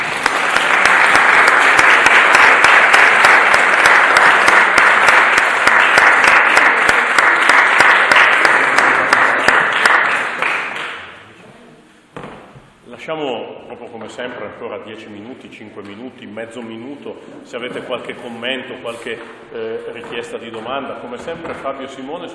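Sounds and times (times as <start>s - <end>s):
audience applause: 0.0s - 11.1s
speech: 13.1s - 22.3s.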